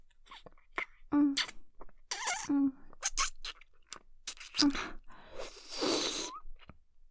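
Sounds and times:
asmr mouth sounds: 0.9 - 6.5.

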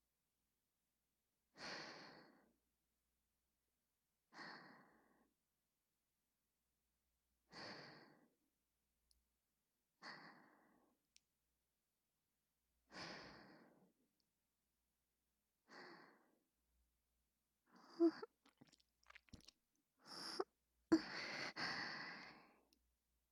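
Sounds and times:
whispered breathing: 1.6 - 2.6, 4.3 - 5.3, 7.5 - 8.4, 10.0 - 11.0, 12.9 - 14.0, 15.7 - 16.4, 20.0 - 22.7.

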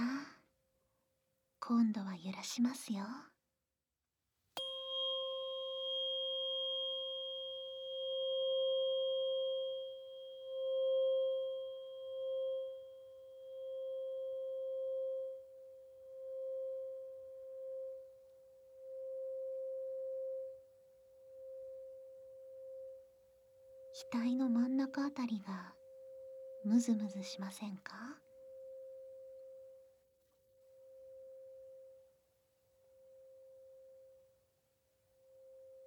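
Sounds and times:
speech: 1.7 - 3.3, 26.7 - 28.2
struck tuning fork ringing: 4.6 - 32.2.

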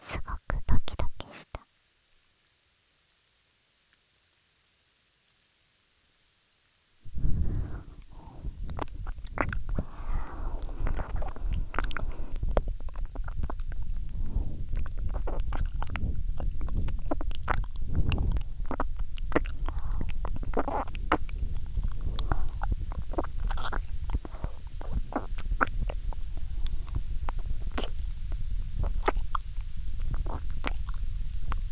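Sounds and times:
ASMR ear licking sounds: 7.1 - 31.7.

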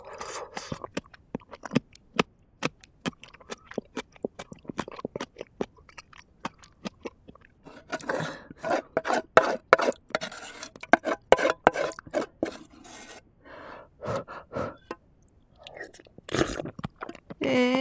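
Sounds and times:
chewing rice from a hot pot: 0.0 - 11.2, 14.0 - 17.7
soft breaths: 7.7 - 8.9, 13.4 - 15.0.

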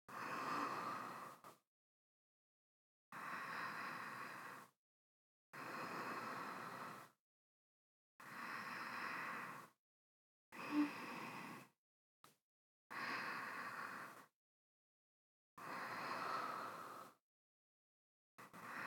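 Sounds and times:
person breathing in sleep: 0.1 - 1.6, 3.2 - 4.8, 5.6 - 7.2, 8.2 - 9.8, 10.6 - 11.8, 12.9 - 14.3, 15.6 - 17.2, 18.4 - 18.8.

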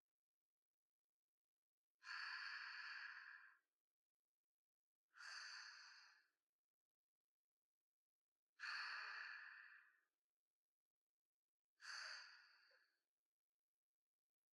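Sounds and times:
sleep breathing ASMR: 2.0 - 3.6, 5.2 - 6.3, 8.6 - 10.0, 11.8 - 12.9.

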